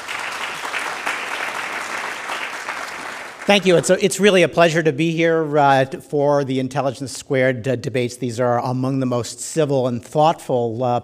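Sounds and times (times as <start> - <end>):
audience applause: 0.0 - 4.0
speech: 3.5 - 11.0.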